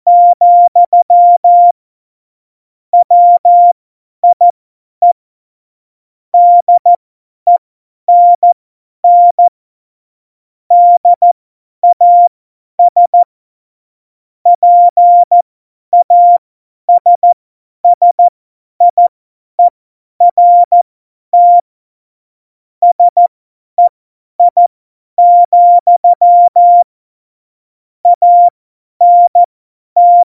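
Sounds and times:
CW Morse code beeps: 0.1 - 1.7, 3.0 - 4.4, 6.4 - 9.5, 10.7 - 13.3, 14.5 - 15.4, 16.0 - 19.7, 20.3 - 20.8, 21.4 - 21.7, 22.8 - 24.6, 25.2 - 26.9, 28.2 - 30.3.

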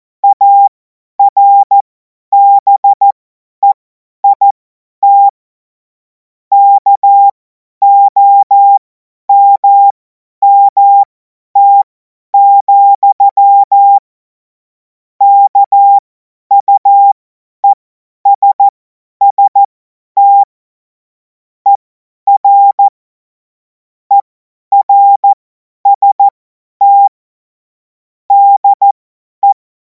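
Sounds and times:
CW Morse code beeps: 0.2 - 1.8, 2.4 - 5.4, 6.5 - 14.0, 15.2 - 20.5, 21.7 - 22.9, 24.1 - 27.2, 28.3 - 29.6.

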